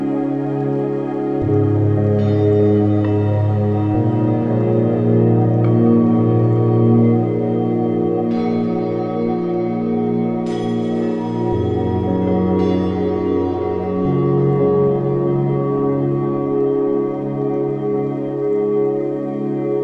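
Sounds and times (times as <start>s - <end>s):
741 Hz frequency ambient meditation music: 0.0s - 19.8s.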